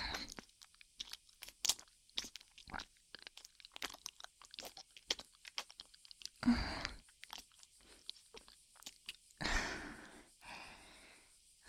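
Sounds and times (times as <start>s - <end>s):
ear licking: 0.1s - 9.4s.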